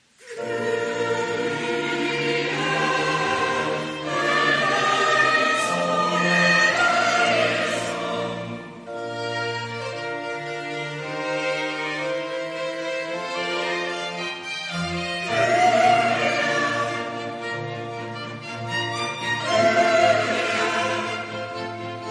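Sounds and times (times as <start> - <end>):
choir singing church music: 0.0 - 22.1.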